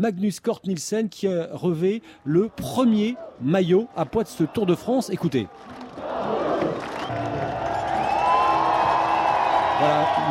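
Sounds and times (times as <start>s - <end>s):
speech: 0.0s - 6.1s, 9.8s - 10.2s
crowd applauding: 2.6s - 10.2s.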